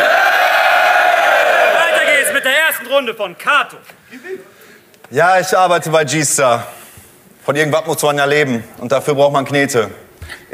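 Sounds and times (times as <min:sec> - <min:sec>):
crowd cheering and yelling for the first round of a contest: 0:00.0 - 0:02.9
speech: 0:03.0 - 0:06.8, 0:07.4 - 0:10.5.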